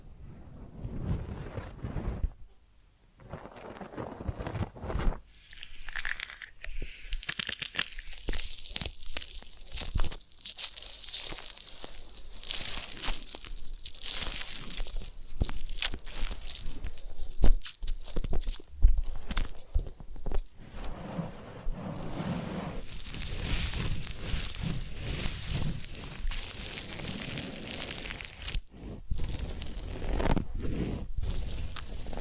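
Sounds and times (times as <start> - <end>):
massage and ear cleaning rubbing and crinkling: 0.6 - 2.6, 3.2 - 32.2.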